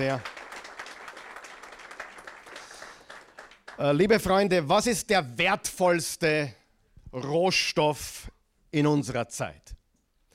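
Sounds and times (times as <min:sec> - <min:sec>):
speech: 0:00.0 - 0:00.3, 0:03.8 - 0:09.7
audience applause: 0:00.0 - 0:04.1.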